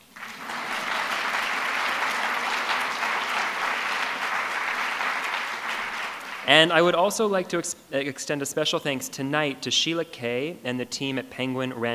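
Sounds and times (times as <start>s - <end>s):
audience applause: 0.0s - 6.8s
speech: 6.5s - 11.9s.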